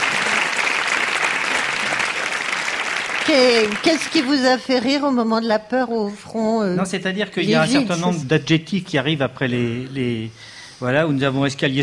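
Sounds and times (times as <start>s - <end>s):
audience applause: 0.0s - 4.8s
speech: 3.3s - 11.8s.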